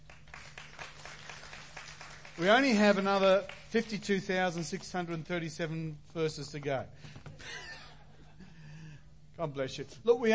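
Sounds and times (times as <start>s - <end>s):
audience clapping: 0.0s - 4.6s
speech: 2.4s - 7.6s, 9.4s - 10.3s.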